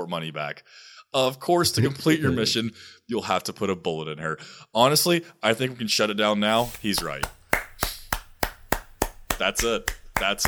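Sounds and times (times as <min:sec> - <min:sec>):
speech: 0:00.0 - 0:07.4, 0:09.4 - 0:10.4
big slow claps: 0:06.5 - 0:10.4.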